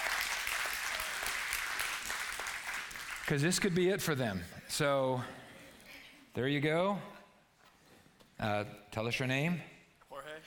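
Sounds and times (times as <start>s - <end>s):
church audience applauding: 0.0s - 3.8s
speech: 3.3s - 5.4s, 6.4s - 7.2s, 8.4s - 9.7s.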